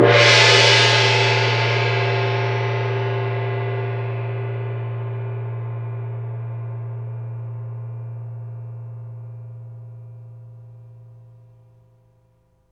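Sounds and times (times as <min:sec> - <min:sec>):
medium cymbals: 0:00.0 - 0:05.8.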